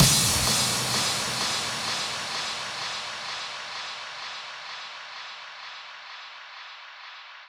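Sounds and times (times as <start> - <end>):
drum loop: 0.0 - 5.3.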